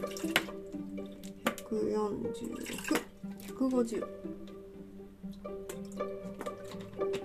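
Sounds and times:
water pouring into a pot: 0:00.0 - 0:03.8, 0:05.3 - 0:07.1
speech: 0:01.7 - 0:04.4.

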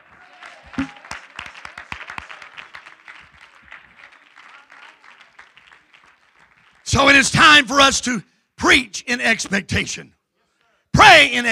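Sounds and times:
crowd clapping hands in praise: 0:00.0 - 0:07.2
speech: 0:07.0 - 0:10.2, 0:11.2 - 0:11.5.

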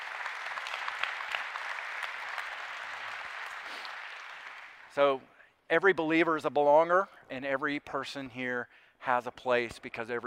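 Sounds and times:
audience applause: 0:00.0 - 0:04.9
speech: 0:05.0 - 0:10.2.

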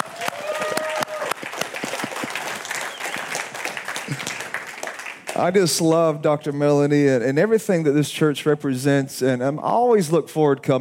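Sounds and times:
audience clapping: 0:00.0 - 0:06.0
speech: 0:05.4 - 0:10.7.

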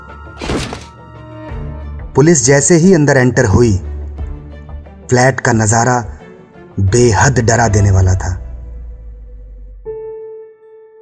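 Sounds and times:
door being broken down: 0:00.4 - 0:01.0
speech: 0:02.2 - 0:03.9, 0:05.1 - 0:06.2, 0:06.8 - 0:08.4.

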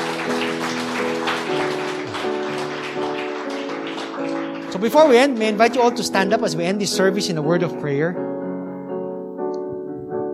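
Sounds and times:
audience clapping: 0:00.0 - 0:06.4
speech: 0:04.8 - 0:08.3.

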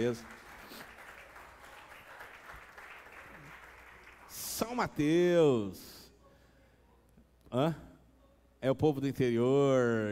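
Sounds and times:
speech: 0:00.0 - 0:00.4, 0:04.6 - 0:05.9, 0:07.5 - 0:07.9, 0:08.6 - 0:10.1
audience applause: 0:00.0 - 0:04.5.

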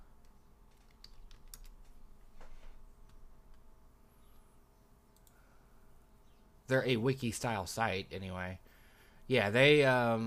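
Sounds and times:
faint typing on a computer keyboard: 0:00.7 - 0:02.0
speech: 0:06.7 - 0:08.7, 0:09.3 - 0:10.2.

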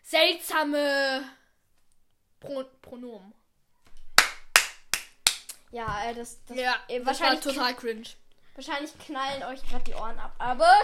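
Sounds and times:
speech: 0:00.1 - 0:01.4, 0:02.4 - 0:03.4, 0:05.7 - 0:10.8
sharp hand claps: 0:04.1 - 0:05.7.

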